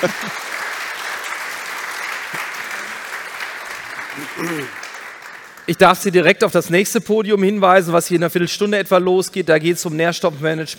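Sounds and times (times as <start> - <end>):
speech: 0.0 - 0.4, 4.2 - 4.8, 5.7 - 10.7
laughter: 0.0 - 0.6, 4.1 - 4.8
audience applause: 0.0 - 6.3.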